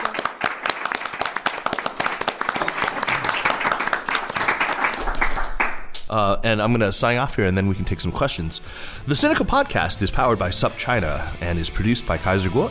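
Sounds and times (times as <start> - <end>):
audience applause: 0.0 - 5.8
speech: 6.1 - 12.6.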